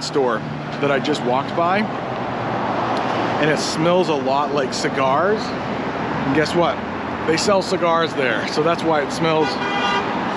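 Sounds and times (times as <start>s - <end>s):
speech: 0.1s - 2.1s, 3.4s - 9.7s
car horn honking: 9.4s - 10.2s.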